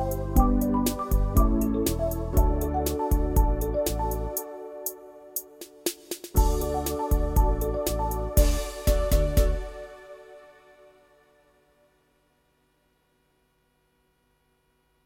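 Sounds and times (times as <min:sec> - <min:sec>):
music backing track: 0:00.0 - 0:11.8.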